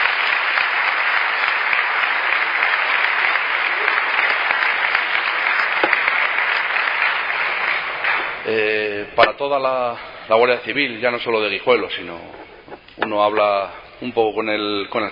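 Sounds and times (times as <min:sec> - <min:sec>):
audience applause: 0:00.0 - 0:09.0
speech: 0:09.2 - 0:12.4, 0:13.0 - 0:15.1.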